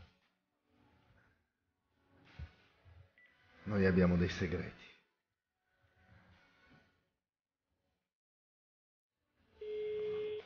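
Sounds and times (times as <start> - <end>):
speech: 3.7 - 5.0
telephone ringback tone on a call: 9.6 - 10.4.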